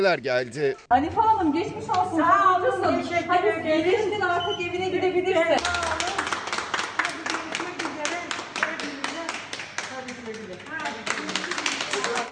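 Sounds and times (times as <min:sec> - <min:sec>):
speech: 0:00.0 - 0:06.3
colleagues applauding: 0:05.6 - 0:12.3.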